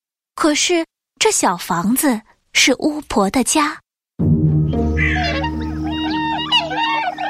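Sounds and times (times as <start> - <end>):
speech: 0.4 - 3.8
swans calling: 4.6 - 7.2.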